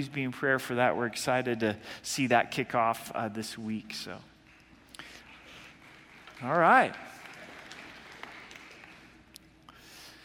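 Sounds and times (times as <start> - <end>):
speech: 0.0 - 4.3, 6.4 - 7.1
steady hiss: 0.0 - 10.2
scattered hesitant claps from audience: 4.4 - 9.5.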